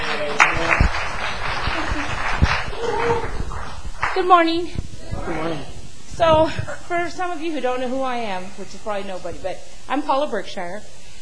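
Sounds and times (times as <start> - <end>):
audience applause: 0.0 - 4.3
speech: 4.2 - 11.0.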